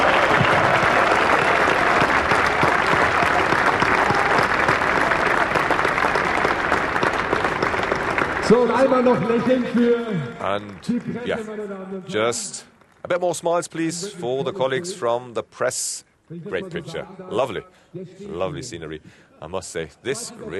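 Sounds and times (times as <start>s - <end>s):
audience applause: 0.0s - 11.5s
speech: 8.6s - 20.5s.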